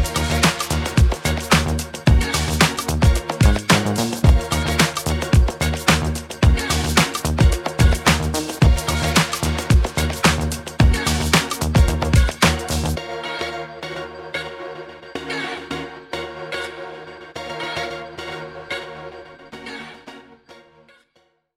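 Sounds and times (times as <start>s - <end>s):
boogie music: 0.0s - 13.0s.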